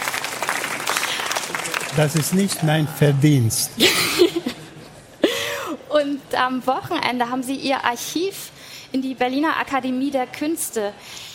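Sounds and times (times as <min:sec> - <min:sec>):
audience birthday applause: 0:00.0 - 0:03.4
speech: 0:02.0 - 0:04.3, 0:06.0 - 0:11.3
laughter: 0:02.0 - 0:05.4.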